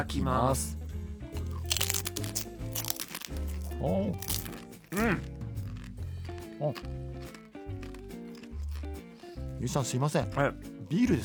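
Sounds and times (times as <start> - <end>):
speech: 0.0 - 0.8, 3.3 - 4.3, 4.9 - 5.4, 6.6 - 7.8, 9.6 - 11.2
crunching a crispy fried snack: 1.4 - 9.4.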